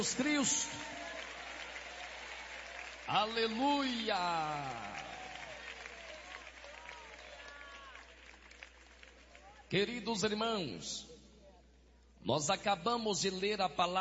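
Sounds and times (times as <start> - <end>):
speech: 0.0 - 1.1, 3.1 - 5.1, 9.7 - 11.1, 12.2 - 13.9
audience applauding: 0.0 - 9.7.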